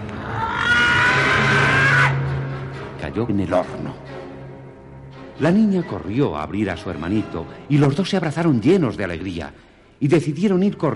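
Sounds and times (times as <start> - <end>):
old witch's tremendous scream of rage: 0.2 - 2.2
speech: 3.2 - 4.2, 5.4 - 10.9.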